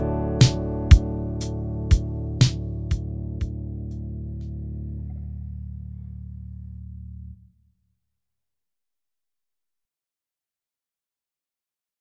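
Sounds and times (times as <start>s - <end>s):
bass notes D C G D: 0.0s - 7.6s.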